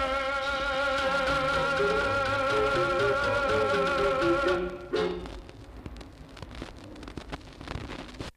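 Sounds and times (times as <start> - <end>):
Italian song: 0.0 - 5.5.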